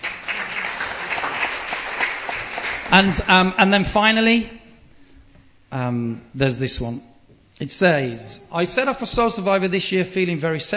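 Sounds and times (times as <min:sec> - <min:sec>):
audience applause: 0:00.0 - 0:03.3
speech: 0:02.9 - 0:04.6, 0:05.7 - 0:10.7.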